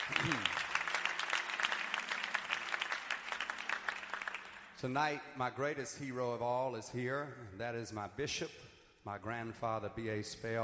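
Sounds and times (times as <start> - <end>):
audience applauding with hand claps: 0.0 - 4.8
speech: 4.8 - 10.6.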